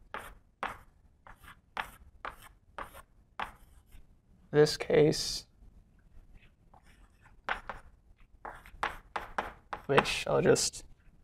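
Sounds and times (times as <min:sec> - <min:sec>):
scratchy writing strokes writing formulas: 0:00.0 - 0:04.1, 0:06.2 - 0:10.2
speech: 0:04.5 - 0:05.5, 0:09.9 - 0:10.9.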